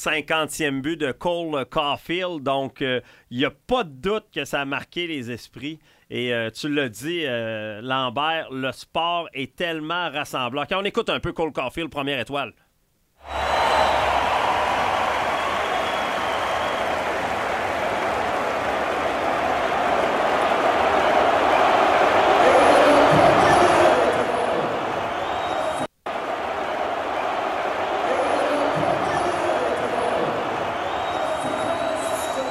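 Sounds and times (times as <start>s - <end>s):
speech: 0.0s - 12.6s, 13.2s - 13.8s
huge arena crowd screaming and cheering: 13.2s - 32.4s.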